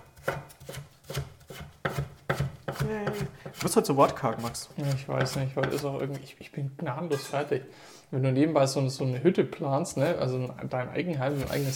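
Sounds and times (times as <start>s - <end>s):
knife dicing vegetables into small cubes: 0.0s - 6.2s
speech: 2.9s - 11.7s.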